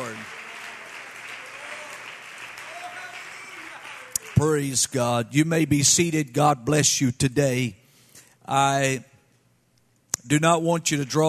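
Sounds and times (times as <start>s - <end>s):
crowd clapping in praise: 0.0s - 5.1s
speech: 4.4s - 7.8s, 8.5s - 9.1s, 10.3s - 11.2s.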